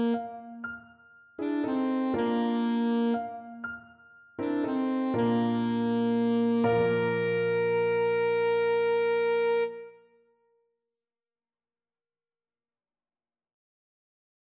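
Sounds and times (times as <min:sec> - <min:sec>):
alto saxophone: 0:00.0 - 0:00.6, 0:01.4 - 0:03.7, 0:04.4 - 0:10.0.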